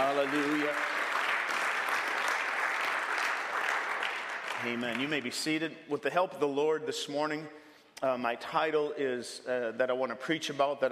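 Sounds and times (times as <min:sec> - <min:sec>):
speech: 0:00.0 - 0:00.9, 0:04.6 - 0:10.8
audience clapping hands: 0:00.0 - 0:05.6.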